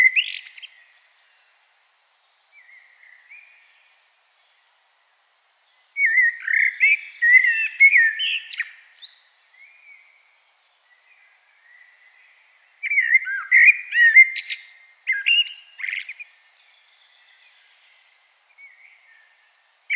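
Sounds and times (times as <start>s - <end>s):
common blackbird singing: 0.0s - 1.4s, 5.7s - 10.3s, 10.9s - 19.9s.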